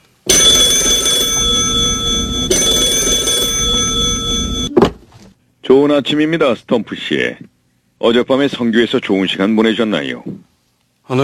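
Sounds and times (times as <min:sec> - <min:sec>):
telephone electric bell ringing: 0:00.3 - 0:04.7
speech: 0:05.7 - 0:10.5.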